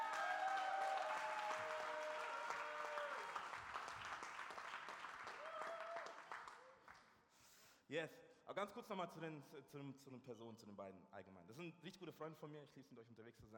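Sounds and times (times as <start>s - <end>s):
audience applause: 0.0s - 7.0s
speech: 7.9s - 13.5s.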